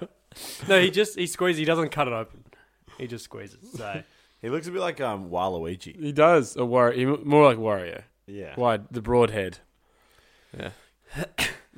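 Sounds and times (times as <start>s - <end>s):
speech: 0.0s - 9.7s, 10.5s - 11.7s
person coughing: 11.1s - 11.7s.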